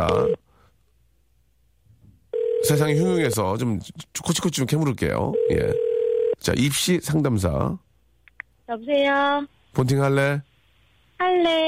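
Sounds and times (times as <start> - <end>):
telephone ring tone on the line: 0.0 - 0.4, 2.3 - 3.4, 5.3 - 6.4
speech: 2.7 - 7.8, 8.7 - 10.5, 11.2 - 11.6.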